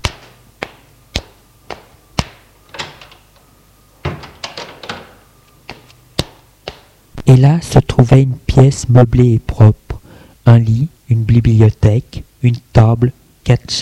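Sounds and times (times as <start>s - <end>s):
latch and handle rattling: 2.7s - 3.4s, 4.0s - 5.2s
door being opened: 2.7s - 5.9s
speech: 7.3s - 9.8s, 10.4s - 13.8s.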